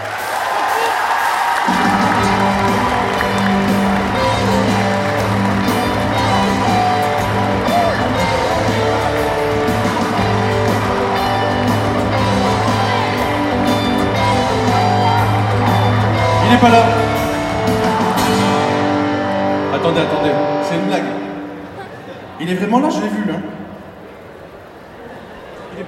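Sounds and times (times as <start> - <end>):
audience applause: 0.0 - 18.8
speech: 16.6 - 17.1, 20.0 - 21.1, 22.4 - 23.5.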